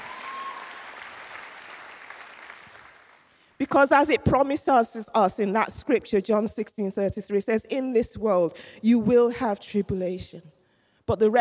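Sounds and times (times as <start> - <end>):
sustained applause from a large audience: 0.0 - 3.4
speech: 3.7 - 11.4.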